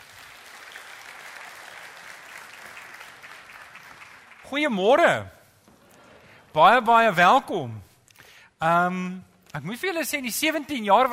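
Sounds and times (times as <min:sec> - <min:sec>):
applause for the band: 0:00.0 - 0:04.8
speech: 0:04.5 - 0:05.4, 0:06.6 - 0:07.9, 0:08.6 - 0:11.1.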